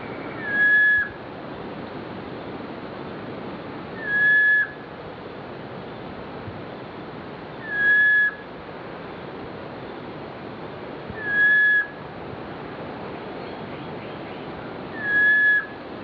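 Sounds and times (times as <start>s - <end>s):
lesser ground cuckoo whistling: 0.0s - 1.2s, 4.0s - 4.8s, 7.6s - 8.4s, 11.2s - 12.0s, 14.9s - 16.0s.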